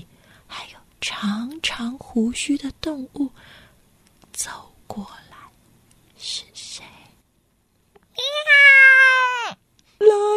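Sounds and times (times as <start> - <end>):
speech: 1.0 - 3.6, 4.4 - 5.3, 6.2 - 6.9, 10.0 - 10.3
human voice imitating a cat meow: 8.2 - 9.6.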